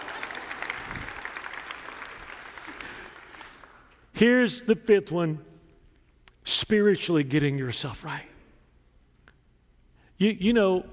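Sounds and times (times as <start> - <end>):
audience clapping: 0.0 - 4.1
speech: 4.2 - 5.5, 6.5 - 8.3, 10.2 - 10.9.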